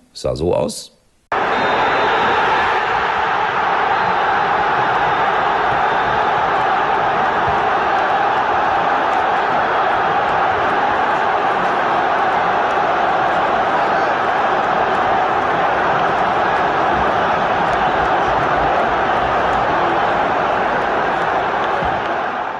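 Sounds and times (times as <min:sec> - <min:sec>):
stadium crowd cheering: 0:01.3 - 0:22.5
final whistle: 0:01.4 - 0:03.0.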